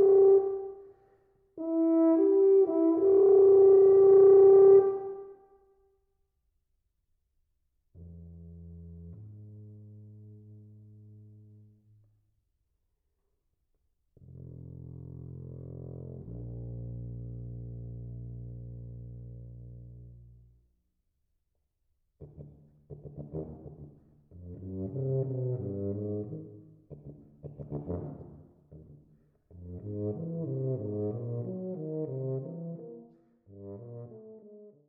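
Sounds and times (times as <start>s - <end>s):
solo tuba: 0.0s - 5.8s, 7.9s - 12.0s, 14.2s - 20.8s, 22.2s - 34.8s.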